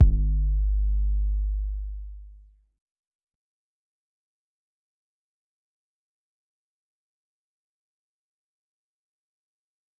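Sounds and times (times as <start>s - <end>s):
808 drum machine: 0.0s - 2.2s.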